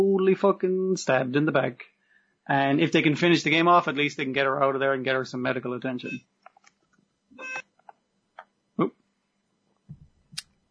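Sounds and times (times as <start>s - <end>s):
speech: 0.0s - 1.9s, 2.5s - 6.4s, 8.8s - 9.0s
intercom buzzing: 7.4s - 7.6s.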